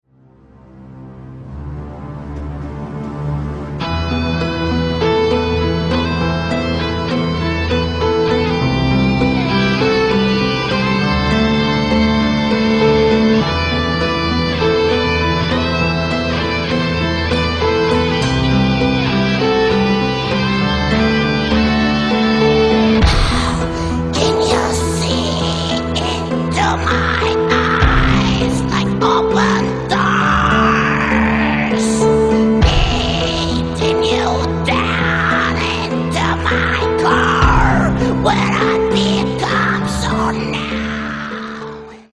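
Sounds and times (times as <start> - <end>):
death metal music: 0.4 - 42.1.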